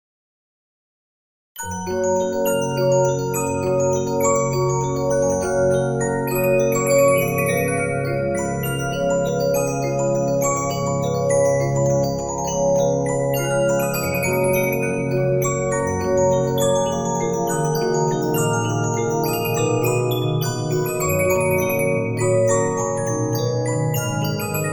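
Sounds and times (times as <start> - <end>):
Regina 15-inch disc music box: 1.6 - 24.7.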